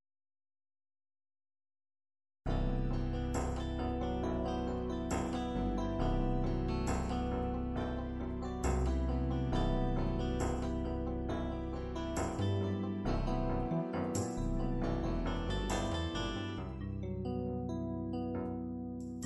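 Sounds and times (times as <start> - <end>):
slow MIDI ballad: 2.5 - 19.2.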